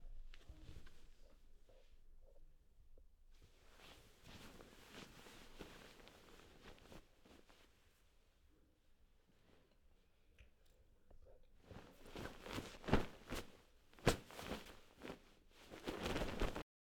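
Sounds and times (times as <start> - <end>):
bed sheet rustling: 3.4 - 8.1, 11.6 - 16.6.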